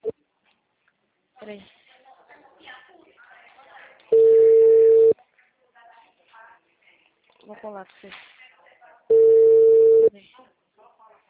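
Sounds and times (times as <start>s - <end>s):
speech: 1.4s - 1.8s, 7.5s - 8.3s
telephone ringback tone during an outgoing call: 4.1s - 5.2s, 9.1s - 10.1s.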